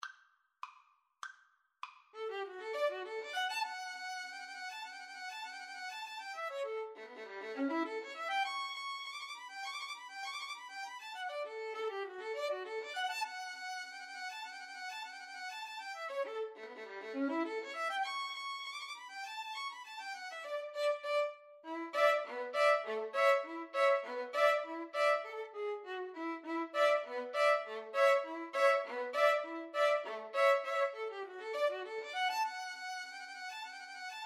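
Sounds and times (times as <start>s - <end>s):
violin duet: 2.2s - 34.2s
clarinet polka: 21.7s - 25.6s, 26.7s - 31.8s.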